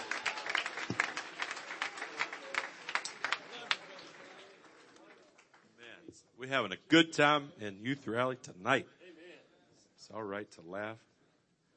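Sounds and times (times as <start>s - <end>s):
audience clapping hands: 0.0s - 5.8s
speech: 6.4s - 9.0s, 10.1s - 11.1s.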